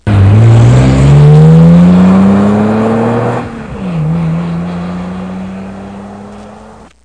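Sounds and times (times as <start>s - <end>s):
car: 0.0s - 7.0s.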